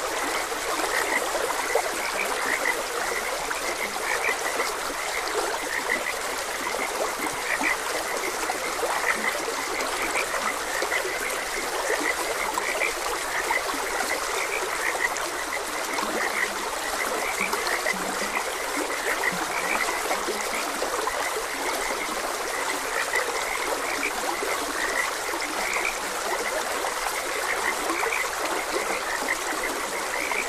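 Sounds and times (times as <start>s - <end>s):
frog chorus: 0.0s - 30.4s
stream water trickling and rushing: 0.0s - 30.4s.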